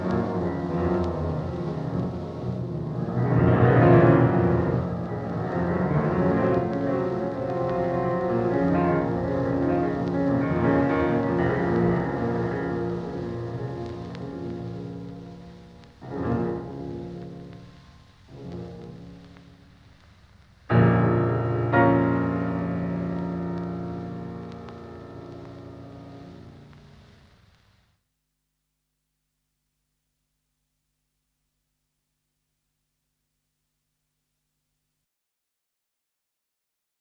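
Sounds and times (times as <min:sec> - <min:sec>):
piano funeral march: 0:00.0 - 0:27.2.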